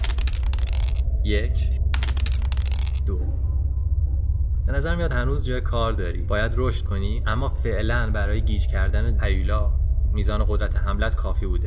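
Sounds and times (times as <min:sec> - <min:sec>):
six-sided dice rolled for a tabletop role-playing game: 0:00.0 - 0:01.2, 0:01.8 - 0:03.1
low steady hum: 0:00.0 - 0:11.6
speech: 0:01.2 - 0:01.8, 0:03.1 - 0:03.4, 0:04.7 - 0:11.6.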